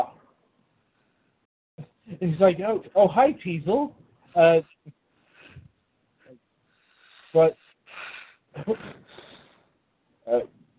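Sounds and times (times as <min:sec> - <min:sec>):
speech: 0:02.2 - 0:05.0, 0:07.3 - 0:09.2, 0:10.3 - 0:10.7
heavy breathy exhales from a person laughing quietly: 0:06.9 - 0:09.6.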